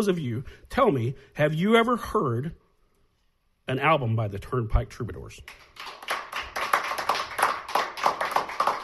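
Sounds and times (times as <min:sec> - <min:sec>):
speech: 0:00.0 - 0:02.6, 0:03.7 - 0:06.1
live audience applause: 0:05.7 - 0:08.8.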